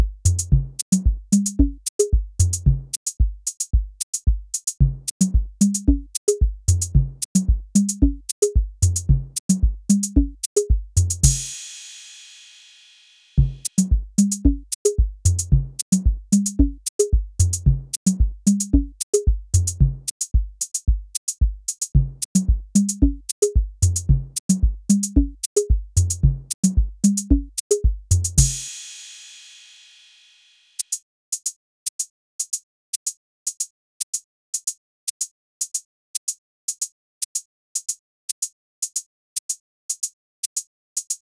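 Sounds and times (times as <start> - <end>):
mini drums: 0.0 - 30.9.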